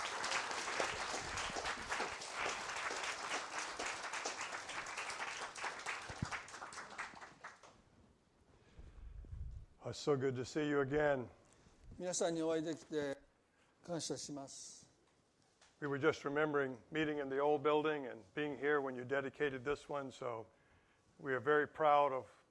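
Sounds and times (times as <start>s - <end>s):
audience applause: 0.0s - 7.8s
speech: 9.9s - 11.4s, 12.0s - 13.2s, 13.9s - 14.8s, 15.8s - 20.6s, 21.2s - 22.4s.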